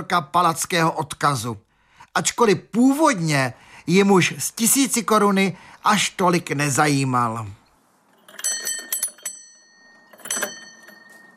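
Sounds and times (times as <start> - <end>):
speech: 0.0 - 7.6
doorbell ringing: 8.2 - 11.3.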